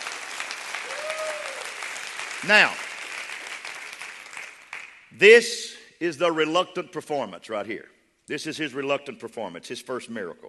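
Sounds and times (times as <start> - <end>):
audience clapping hands: 0.0 - 5.2
speech: 2.4 - 2.8, 5.1 - 10.4.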